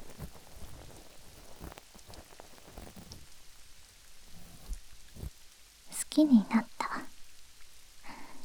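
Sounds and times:
steady rain pattering on a surface: 0.0s - 8.4s
speech: 6.2s - 6.7s.

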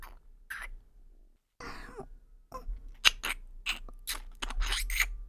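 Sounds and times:
normal kiss: 2.6s - 5.2s.

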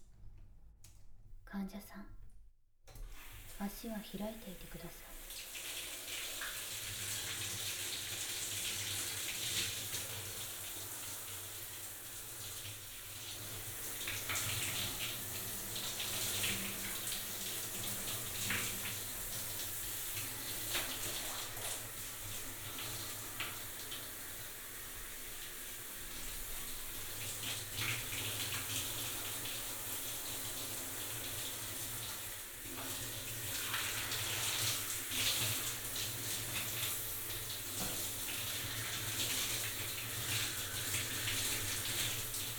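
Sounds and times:
speech: 1.5s - 2.2s, 3.6s - 5.5s
water running from a tap or shower to rinse a patient: 2.9s - 42.5s.

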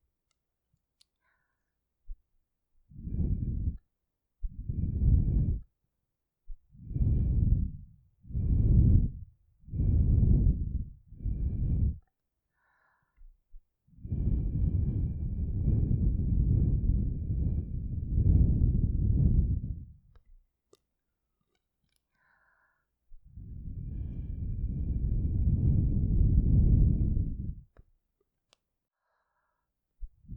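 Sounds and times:
blowing through a straw into ears: 3.0s - 3.8s, 4.5s - 5.6s, 6.8s - 12.0s, 14.0s - 20.0s, 23.4s - 27.6s.

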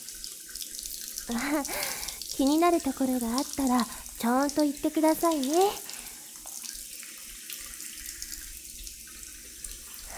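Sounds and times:
shower water running: 0.0s - 10.1s
speech: 1.3s - 5.9s.

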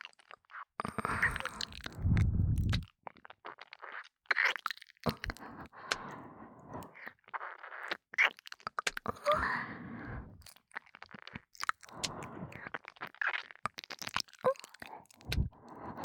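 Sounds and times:
breathy ASMR breathing in the right ear: 0.8s - 2.8s, 5.1s - 7.0s, 9.2s - 10.5s, 11.9s - 12.7s, 14.8s - 16.0s
ASMR ear licking: 0.8s - 2.9s, 5.1s - 7.9s, 8.9s - 13.1s, 13.8s - 16.0s.

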